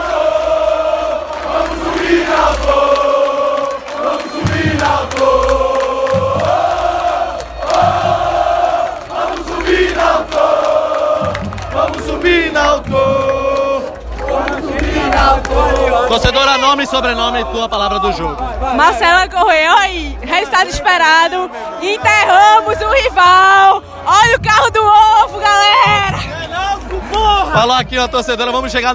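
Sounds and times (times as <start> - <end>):
football supporters singing a chant in stadium: 0.0 - 27.7
speech: 15.8 - 28.9.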